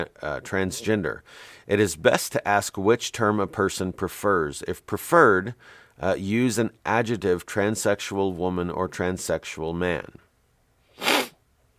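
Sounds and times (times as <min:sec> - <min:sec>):
speech: 0:00.0 - 0:10.2
person sniffing: 0:10.9 - 0:11.4.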